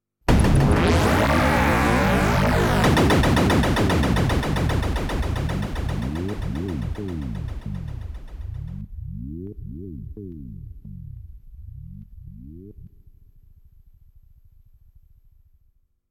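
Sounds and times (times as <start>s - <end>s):
final boss death sound effect: 0.3s - 9.4s.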